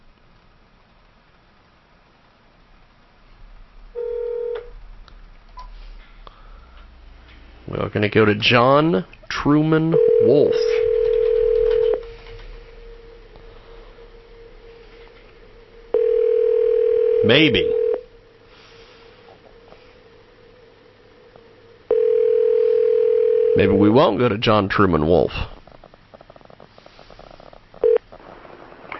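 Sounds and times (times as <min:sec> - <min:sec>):
telephone ringback tone: 0:04.0 - 0:04.7, 0:09.9 - 0:12.8, 0:15.9 - 0:18.1, 0:21.9 - 0:23.8
speech: 0:07.9 - 0:10.8, 0:17.3 - 0:17.8, 0:23.6 - 0:25.5
man talking over a phone line: 0:07.9 - 0:11.2, 0:17.1 - 0:18.0, 0:23.5 - 0:25.5.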